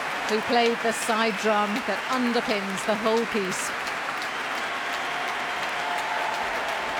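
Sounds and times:
concert audience applause: 0:00.0 - 0:06.9
speech: 0:00.3 - 0:03.9.

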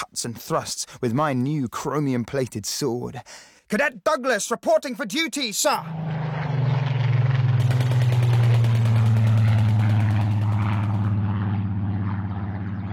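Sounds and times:
speech: 0:00.2 - 0:06.6
Spitfires and Messerschmitts dogfighting overhead: 0:05.8 - 0:12.9.

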